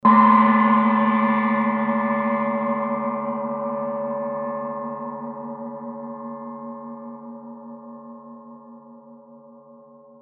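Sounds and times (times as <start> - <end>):
Tibetan chai cymbal: 0.0 - 8.9.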